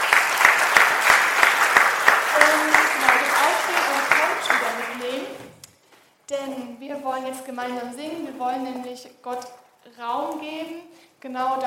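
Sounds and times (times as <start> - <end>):
church congregation clapping: 0.0 - 5.6
speech: 7.0 - 11.6.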